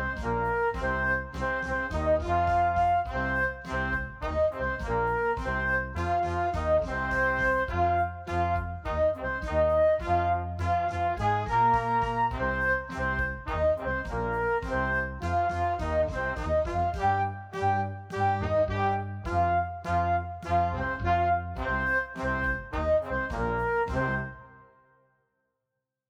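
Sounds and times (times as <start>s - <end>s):
flute playing hard rock blues: 0.0s - 24.6s.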